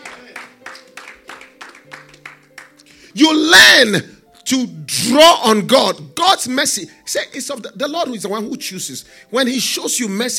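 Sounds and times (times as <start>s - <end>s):
audience clapping in a steady rhythm: 0.0s - 3.0s
speech: 3.2s - 10.3s.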